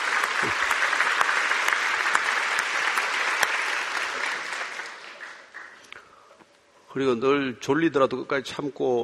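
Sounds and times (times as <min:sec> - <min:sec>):
audience applause: 0:00.0 - 0:06.0
speech: 0:07.0 - 0:09.0.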